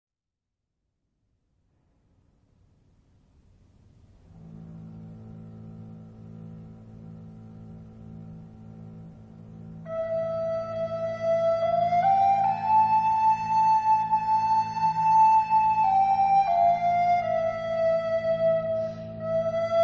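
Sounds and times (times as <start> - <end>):
lullaby music: 9.9 - 19.8.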